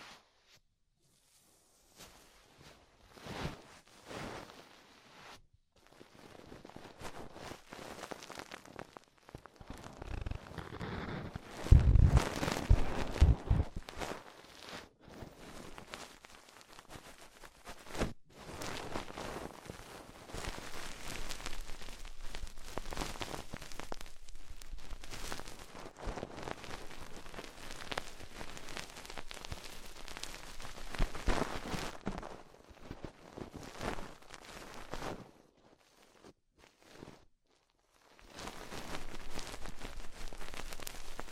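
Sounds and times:
crackly rustling touches in ear-exploration ASMR: 0.0 - 41.2.

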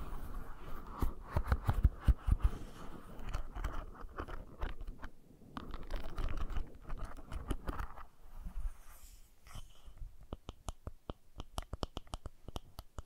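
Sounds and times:
brushing and scratching: 0.0 - 10.0.

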